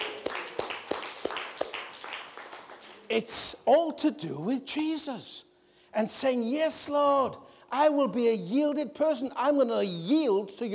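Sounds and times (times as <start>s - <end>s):
crowd clapping: 0.0s - 3.1s
speech: 3.1s - 10.7s.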